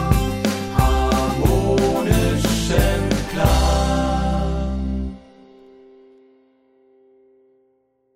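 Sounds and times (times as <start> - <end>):
choir singing: 0.0 - 5.4.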